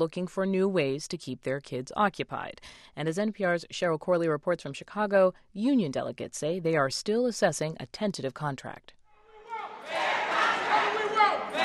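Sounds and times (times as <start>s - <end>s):
speech: 0.0s - 9.0s
crowd of teachers and supporters chanting for a fair contract: 9.2s - 11.6s.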